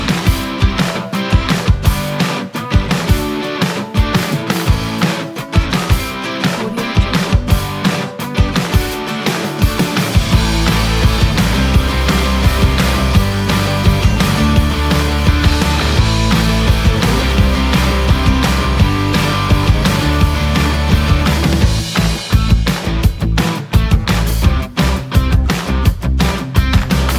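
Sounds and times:
positive driving rock music: 0.0s - 27.1s.

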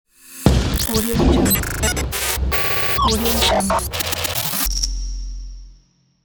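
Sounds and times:
digital glitch logo intro: 0.3s - 5.0s.

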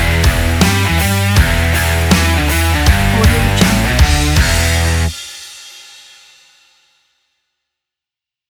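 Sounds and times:
indie rock music: 0.0s - 5.2s.

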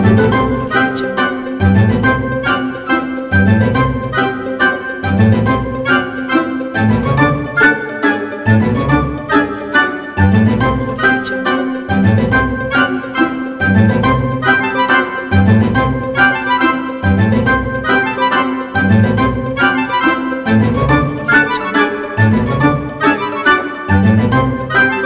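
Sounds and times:
pizzicato strings in comedy cartoon music: 0.0s - 25.0s
woodwinds in comedy cartoon music: 0.0s - 25.0s.

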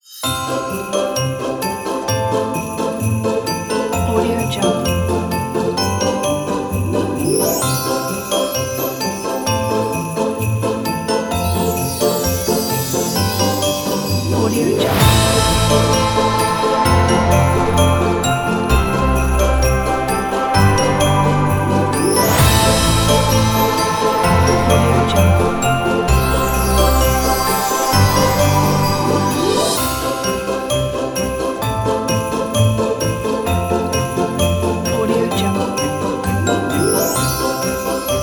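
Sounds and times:
Christmas sleigh bells: 0.0s - 38.2s.

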